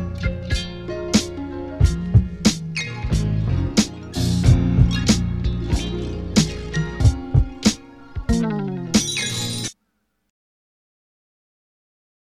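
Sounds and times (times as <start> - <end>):
music beat: 0.0 - 9.8.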